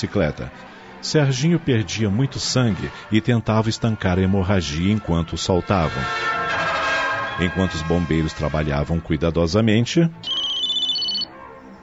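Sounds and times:
speech: 0:00.0 - 0:06.4, 0:07.4 - 0:10.4
cell phone ringing: 0:10.2 - 0:11.3.

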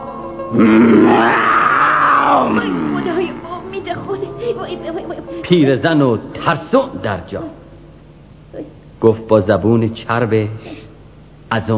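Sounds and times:
speech: 0:00.5 - 0:01.5, 0:02.4 - 0:07.6, 0:08.5 - 0:10.8, 0:11.5 - 0:11.7
voice imitating a lion's roar: 0:00.5 - 0:03.5.

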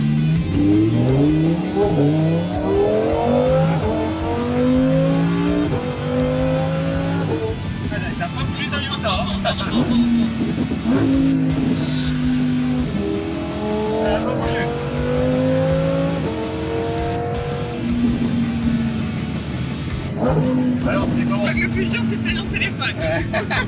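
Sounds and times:
car accelerating hard through gear shifts: 0:00.0 - 0:23.6
speech: 0:01.8 - 0:02.6
laughter: 0:09.0 - 0:10.2, 0:22.5 - 0:23.6.

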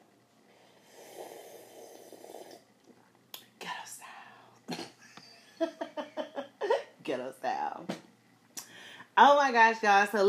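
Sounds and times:
person sipping a drink: 0:00.5 - 0:03.0
speech: 0:09.2 - 0:10.2.

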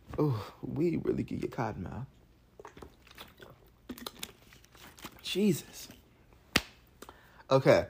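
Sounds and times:
speech: 0:00.2 - 0:02.7, 0:05.3 - 0:06.0, 0:07.5 - 0:07.8
person drinking water: 0:02.5 - 0:05.2
container noises: 0:02.6 - 0:05.4.

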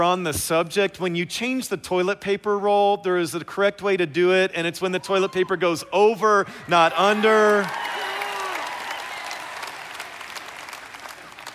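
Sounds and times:
speech: 0:00.0 - 0:08.0
audience clapping: 0:07.0 - 0:11.5.

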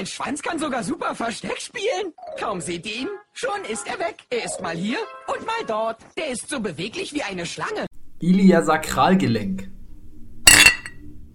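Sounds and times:
speech: 0:00.0 - 0:09.7
glasses clinking in a toast: 0:10.5 - 0:11.0.

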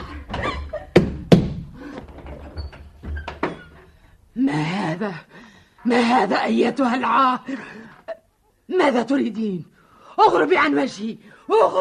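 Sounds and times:
heavy fists pounding on a wooden door: 0:00.9 - 0:01.6
speech: 0:04.4 - 0:07.9, 0:08.7 - 0:11.7.

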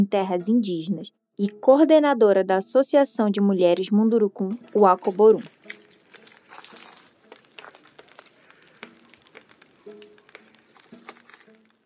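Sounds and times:
speech: 0:00.0 - 0:05.8
house fire crackling and popping: 0:04.7 - 0:11.8.

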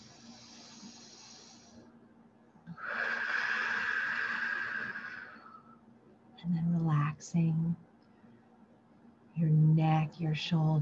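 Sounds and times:
deep breathing: 0:00.0 - 0:01.9, 0:02.7 - 0:05.8
speech: 0:07.2 - 0:07.8, 0:09.8 - 0:10.8.

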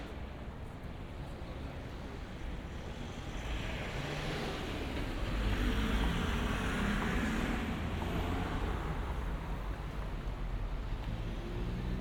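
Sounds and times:
low traffic rumble in Shinbashi Tokyo: 0:00.1 - 0:11.9.

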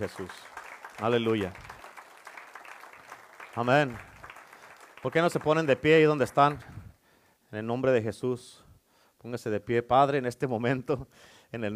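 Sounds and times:
speech: 0:00.0 - 0:01.7, 0:03.6 - 0:04.1, 0:05.0 - 0:06.8, 0:07.5 - 0:08.6, 0:09.2 - 0:11.7
applause: 0:00.0 - 0:06.9.

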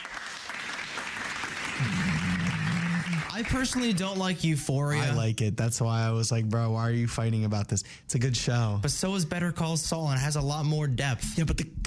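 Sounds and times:
applause sound effect: 0:00.0 - 0:04.3
speech: 0:03.4 - 0:11.8.

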